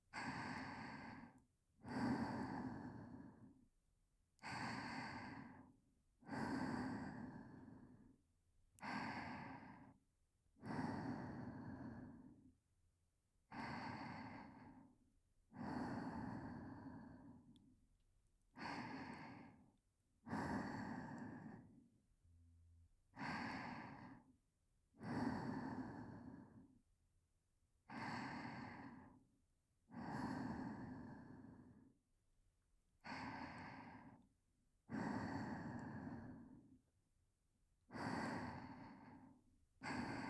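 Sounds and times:
whispered breathing: 0.1 - 3.7, 4.4 - 8.2, 8.8 - 12.6, 13.5 - 17.7, 18.6 - 21.9, 23.2 - 24.4, 25.0 - 26.9, 27.9 - 29.3, 29.9 - 32.0, 33.0 - 36.8, 37.9 - 40.2.

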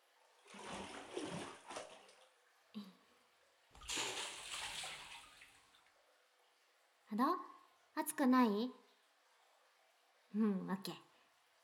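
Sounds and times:
hot water poured over someone sitting in a bath: 0.4 - 2.4, 3.8 - 5.9
speech: 7.1 - 8.8, 10.4 - 11.1.

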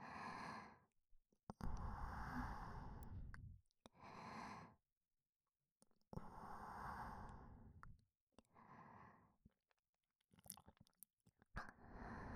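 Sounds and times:
breathing in the left ear: 0.0 - 0.9, 1.7 - 3.3, 4.0 - 4.8, 6.2 - 7.7, 8.4 - 9.4, 11.6 - 12.3.

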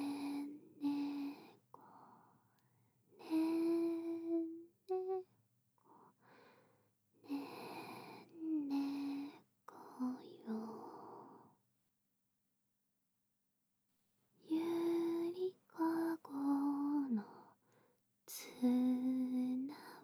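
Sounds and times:
lullaby: 0.0 - 2.3, 3.2 - 5.3, 7.2 - 11.5, 14.4 - 20.0.

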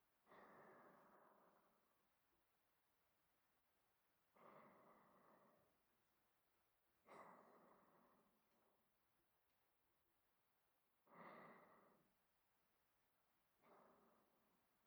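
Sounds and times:
person breathing in sleep: 0.3 - 1.9, 4.3 - 5.9, 7.1 - 8.6, 11.1 - 12.2, 13.6 - 14.6.

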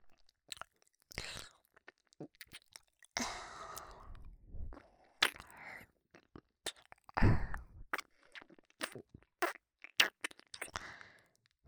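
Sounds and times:
soft nibbling for ASMR: 0.5 - 3.2
ear licking for ASMR: 5.2 - 7.2, 7.9 - 10.8.

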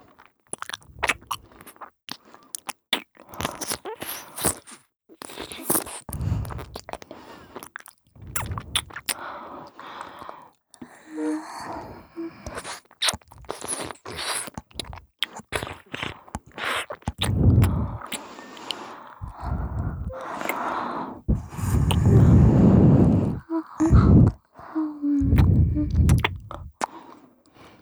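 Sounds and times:
endless ear licking: 11.2 - 27.2.

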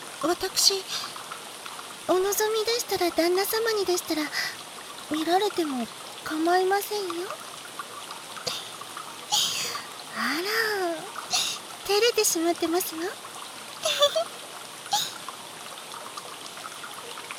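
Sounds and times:
rain: 0.0 - 17.3
water trickling at an open-air bath in rain: 0.0 - 17.3
speech: 0.2 - 1.2, 2.1 - 7.4, 10.2 - 11.1, 11.9 - 13.2, 13.9 - 14.4.

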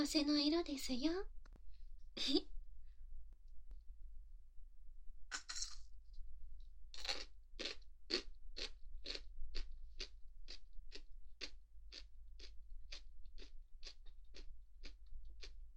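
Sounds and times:
speech: 0.0 - 1.4, 2.2 - 2.5
faint low hum: 0.0 - 15.7
crunchy takuan pickled daikon radish with bonito flakes being bitten and chewed: 6.9 - 15.7.

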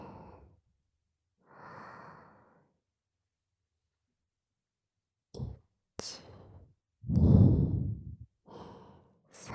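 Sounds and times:
deep breaths in and out during a guided breathing exercise: 1.4 - 2.8, 6.2 - 9.5.

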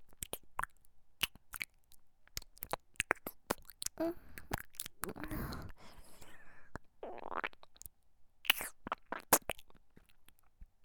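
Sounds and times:
ear licking sounds: 0.1 - 5.8, 8.5 - 10.3.

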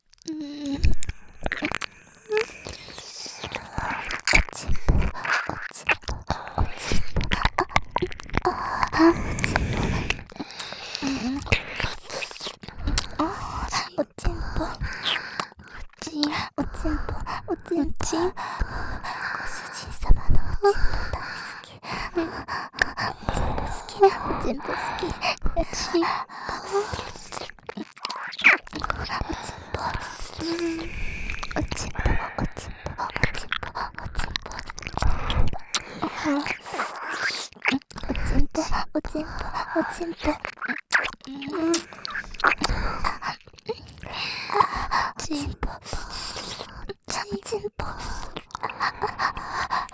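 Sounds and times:
ear licking: 0.0 - 49.9.

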